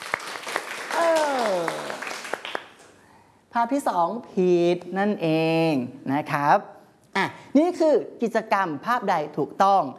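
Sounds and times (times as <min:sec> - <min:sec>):
applause: 0:00.0 - 0:03.0
speech: 0:03.6 - 0:09.9.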